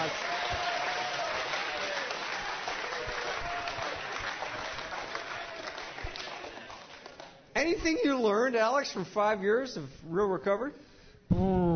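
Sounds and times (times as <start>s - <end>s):
round of applause: 0.0s - 7.4s
speech: 7.6s - 11.6s.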